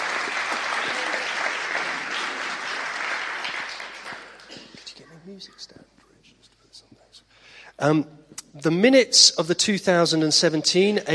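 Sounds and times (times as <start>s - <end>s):
audience applause and cheering: 0.0s - 4.8s
speech: 5.3s - 5.8s, 7.8s - 11.1s.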